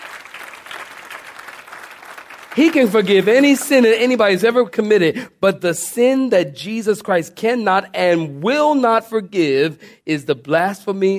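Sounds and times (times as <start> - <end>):
audience clapping hands: 0.0 - 4.4
speech: 2.6 - 11.1.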